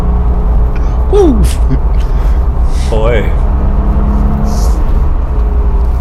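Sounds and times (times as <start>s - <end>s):
air-cooled Porsche engine rumbling: 0.0s - 5.9s
person exclaiming: 1.1s - 1.9s
speech: 1.1s - 1.9s, 3.0s - 3.4s.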